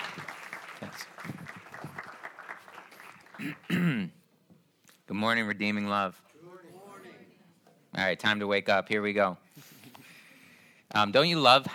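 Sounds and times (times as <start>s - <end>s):
church congregation clapping to welcome a speaker: 0.0s - 4.2s
speech: 3.4s - 4.2s, 5.1s - 6.2s, 8.0s - 9.4s, 11.0s - 11.7s.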